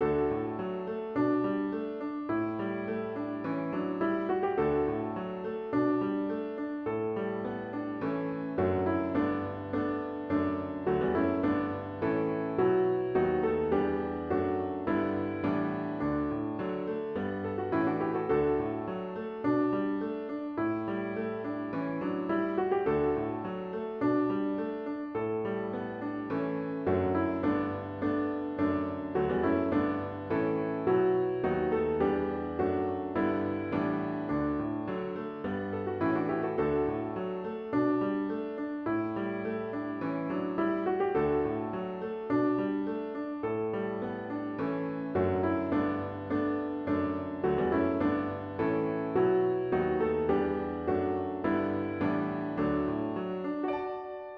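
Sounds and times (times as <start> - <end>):
solo piano: 0.0 - 54.3.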